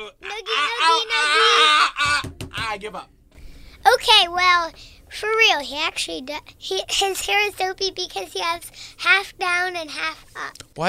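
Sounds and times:
person screaming during a playful brawl: 0.0s - 2.4s
speech: 2.8s - 3.2s, 3.8s - 10.8s.

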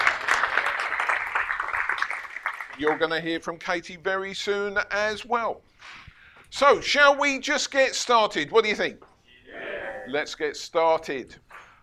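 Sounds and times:
audience round of applause: 0.0s - 3.1s
speech: 2.8s - 9.1s, 10.1s - 11.4s.

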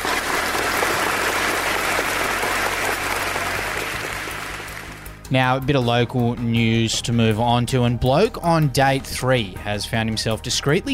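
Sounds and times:
crowd applauding: 0.0s - 5.2s
speech: 5.3s - 10.9s.

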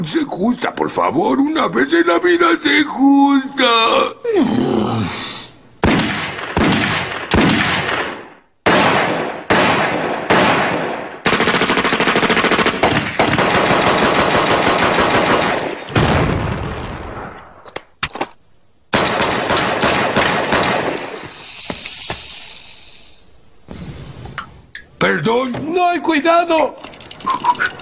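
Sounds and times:
speech: 0.1s - 5.1s, 25.3s - 27.7s
automatic gunfire: 5.8s - 16.1s, 18.9s - 21.2s.

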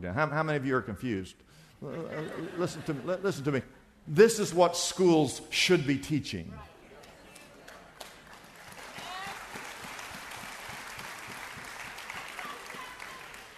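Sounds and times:
speech: 0.0s - 6.7s
laughter: 1.8s - 3.5s
audience clapping: 7.0s - 13.5s.

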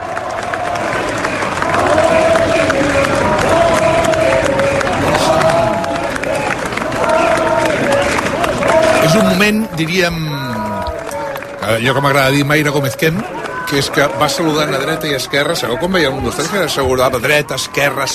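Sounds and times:
crowd applauding and cheering outside courthouse: 0.0s - 18.1s
murmur of voices: 0.0s - 18.1s
speech: 9.8s - 10.3s, 11.7s - 18.1s.

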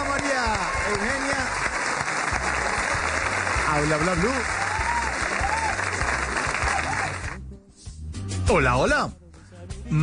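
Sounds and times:
audience applause welcoming a guest at a live show: 0.0s - 7.4s
speech: 3.8s - 4.6s, 8.5s - 9.2s, 9.9s - 10.0s.

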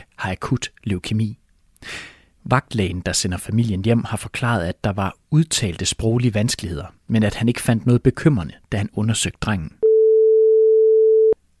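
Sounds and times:
speech: 0.2s - 9.8s
telephone call tone: 9.8s - 11.4s.

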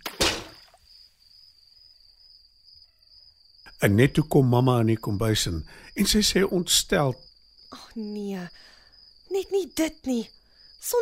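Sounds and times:
bucket of water knocked over: 0.0s - 0.8s
speech: 3.8s - 8.7s, 9.3s - 11.0s.

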